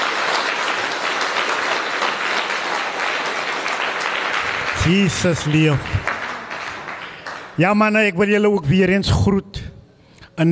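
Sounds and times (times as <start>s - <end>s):
crowd applauding: 0.0s - 8.0s
speech: 4.8s - 6.1s, 7.6s - 9.6s.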